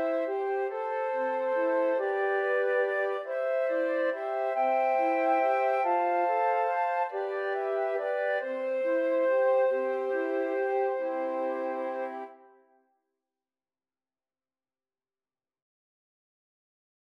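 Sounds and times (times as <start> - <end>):
flute quartet playing: 0.0 - 12.5.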